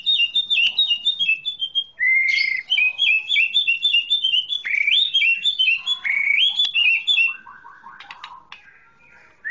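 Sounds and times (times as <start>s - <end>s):
Oriental magpie-robin song with ticking rattles and upward-slurred whistles: 0.0s - 9.5s.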